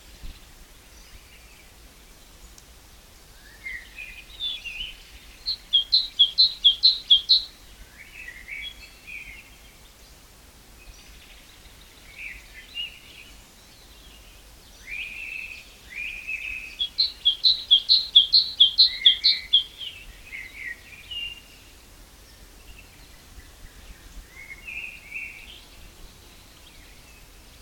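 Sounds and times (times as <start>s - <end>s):
background hiss: 0.0s - 27.6s
great tit calling: 4.8s - 7.5s, 16.5s - 20.0s.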